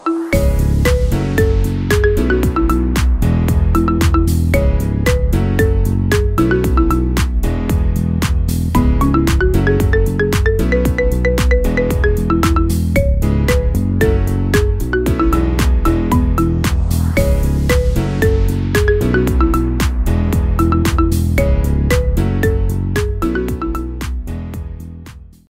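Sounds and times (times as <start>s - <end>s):
marimba cover: 0.0s - 7.5s, 8.6s - 24.2s.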